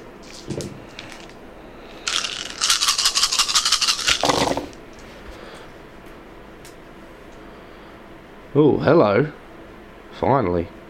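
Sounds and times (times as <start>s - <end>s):
dice rattling: 1.0s - 1.3s, 2.0s - 4.8s
speech: 8.6s - 9.4s, 10.2s - 10.8s.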